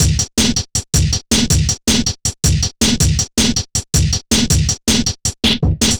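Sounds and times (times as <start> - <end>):
double-time drum loop: 0.0 - 5.9.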